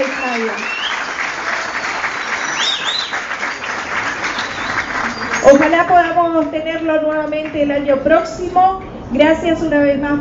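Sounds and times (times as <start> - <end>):
audience applause: 0.0 - 6.1
speech: 0.4 - 0.8, 5.4 - 10.1.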